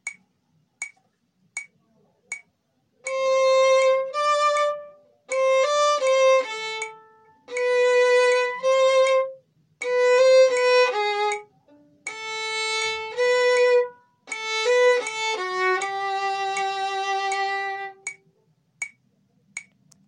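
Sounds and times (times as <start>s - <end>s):
metronome ticking: 0.0s - 1.0s, 1.6s - 20.0s
slow music excerpt: 3.0s - 19.0s.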